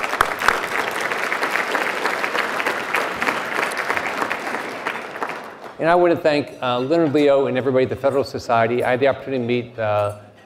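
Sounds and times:
audience applause: 0.0s - 6.2s
speech: 5.8s - 10.2s.

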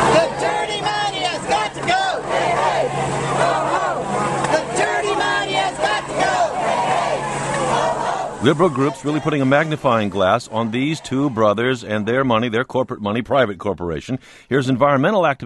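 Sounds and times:
large crowd chanting and shouting at a protest rally: 0.0s - 12.3s
speech: 8.4s - 15.4s.

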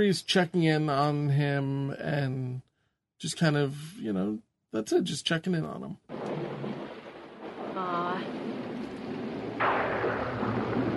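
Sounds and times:
speech: 0.0s - 6.4s
thunder: 6.1s - 10.9s.

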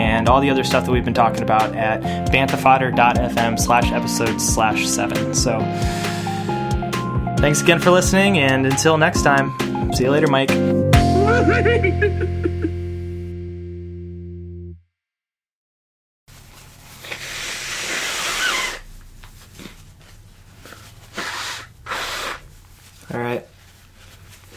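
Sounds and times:
speech: 0.2s - 6.2s, 7.4s - 10.8s, 11.4s - 12.3s
person blowing nose: 5.6s - 7.0s, 16.7s - 19.8s, 20.6s - 23.0s
laughter: 11.2s - 12.8s.

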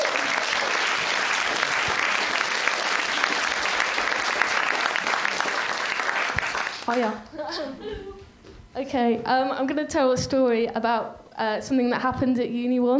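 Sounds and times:
audience applause: 0.0s - 7.0s
speech: 6.9s - 8.2s, 8.8s - 12.9s.

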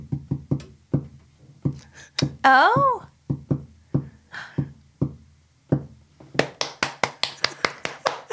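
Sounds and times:
sharp dry taps of Morse code: 0.0s - 8.1s
speech: 2.4s - 3.0s
voice exclaiming: 2.4s - 3.1s.

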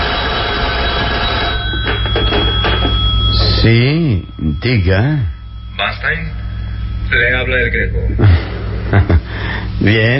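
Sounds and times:
telephone bell ringing: 0.0s - 7.4s
speech: 3.6s - 6.4s, 7.1s - 10.1s
laughter: 8.0s - 9.5s.

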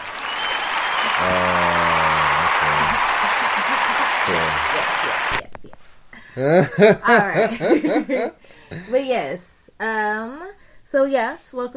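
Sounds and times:
applause button sound effect: 0.0s - 5.4s
laughter: 1.0s - 5.4s, 6.4s - 9.0s
speech: 4.3s - 5.5s, 6.4s - 11.7s.

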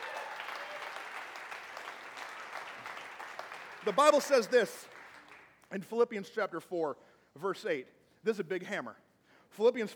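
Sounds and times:
audience applause: 0.0s - 5.5s
speech: 3.8s - 4.9s, 5.7s - 9.9s.

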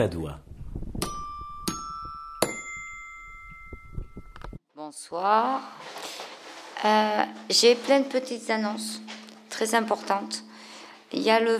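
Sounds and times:
speech: 0.0s - 0.5s, 4.9s - 6.0s, 6.8s - 10.5s, 11.1s - 11.5s
radio show jingle with bell-like chimes: 1.1s - 4.6s.

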